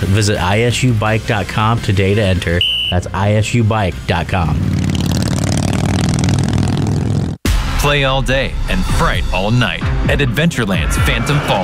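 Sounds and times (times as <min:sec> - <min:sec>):
speech: 0:00.0 - 0:04.9, 0:07.8 - 0:11.6
custom-painted motorcycle with Mean Machine Cycles parts revving engine: 0:04.2 - 0:07.4.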